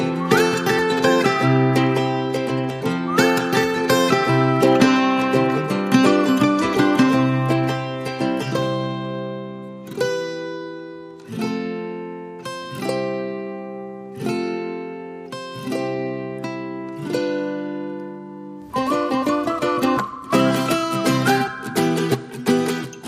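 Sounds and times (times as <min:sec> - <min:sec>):
whistles: 0:00.0 - 0:02.0, 0:02.8 - 0:05.6, 0:18.7 - 0:22.6
guitars: 0:00.0 - 0:23.0.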